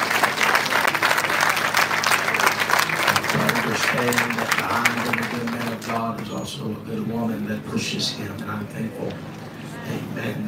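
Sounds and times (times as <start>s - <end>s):
audience clapping hands: 0.0s - 6.4s
speech: 3.9s - 10.4s.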